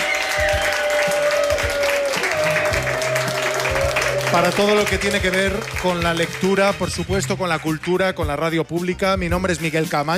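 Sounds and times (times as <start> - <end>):
audience applause at a book fair: 0.0 - 7.1
speech: 4.3 - 10.1.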